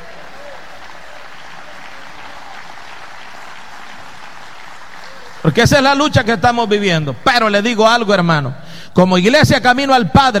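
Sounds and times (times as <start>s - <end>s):
audience clapping: 0.0s - 7.8s
speech: 5.4s - 10.3s.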